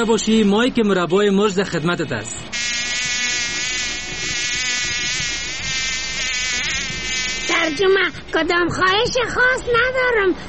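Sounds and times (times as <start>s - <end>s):
speech: 0.0s - 2.6s, 7.7s - 10.4s
fly buzzing: 2.5s - 8.0s.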